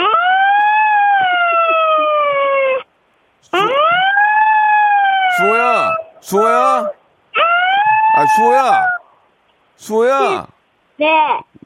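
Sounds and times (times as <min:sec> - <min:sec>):
child's voice imitating a fire alarm siren: 0:00.0 - 0:02.8, 0:03.6 - 0:09.0
speech: 0:08.3 - 0:09.0, 0:09.8 - 0:11.6.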